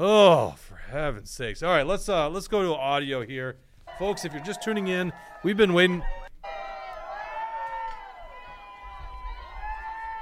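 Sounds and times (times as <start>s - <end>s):
speech: 0.0s - 6.3s
audience applauding: 3.9s - 10.2s.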